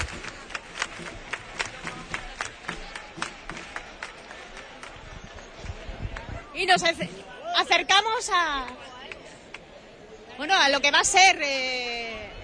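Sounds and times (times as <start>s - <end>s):
crowd clapping hands at street march: 0.0s - 6.4s, 8.6s - 9.7s
speech: 6.6s - 8.9s, 10.4s - 12.0s.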